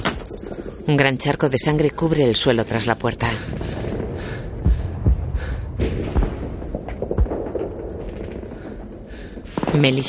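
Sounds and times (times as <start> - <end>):
low rumbling background: 0.4 - 9.7
speech: 0.9 - 3.8, 9.8 - 10.0
gunshots in a World War II firefight from a radio drama: 5.8 - 10.0.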